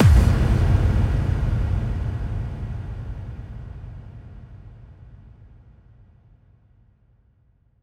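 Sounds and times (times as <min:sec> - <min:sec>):
bass drum kick with reverb: 0:00.0 - 0:04.6.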